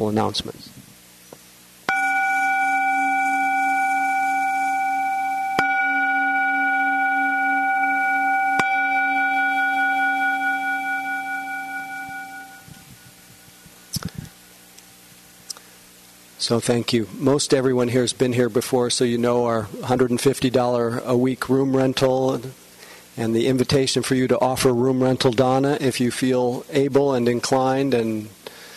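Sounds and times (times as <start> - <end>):
speech: 0.0 - 0.7, 16.5 - 22.6, 23.2 - 28.4
little gong struck: 1.9 - 13.7.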